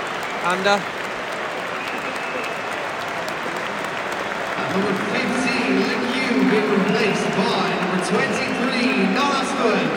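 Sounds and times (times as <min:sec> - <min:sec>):
large stadium crowd cheering and applauding: 0:00.0 - 0:09.9
speech: 0:00.4 - 0:01.0, 0:04.7 - 0:09.9.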